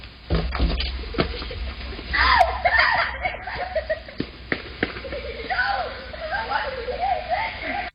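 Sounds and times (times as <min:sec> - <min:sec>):
laughter: 0:00.9 - 0:07.9
group of kids yelling: 0:02.1 - 0:04.2, 0:05.0 - 0:07.9.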